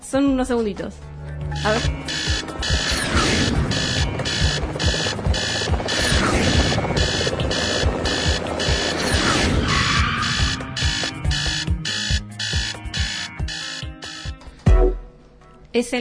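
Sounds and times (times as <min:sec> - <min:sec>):
speech: 0:00.1 - 0:02.2, 0:15.8 - 0:15.9
helicopter rotor spinning: 0:01.6 - 0:14.4.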